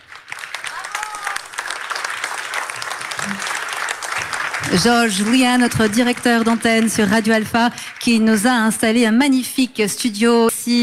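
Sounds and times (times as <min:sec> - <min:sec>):
audience applause: 0:00.0 - 0:08.2
speech: 0:04.7 - 0:10.8.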